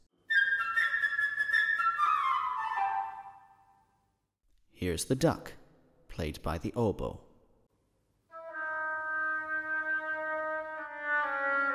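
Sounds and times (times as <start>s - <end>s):
flute playing a melody: 0.2s - 3.8s, 8.3s - 11.7s
speech: 4.8s - 5.6s, 6.2s - 7.3s.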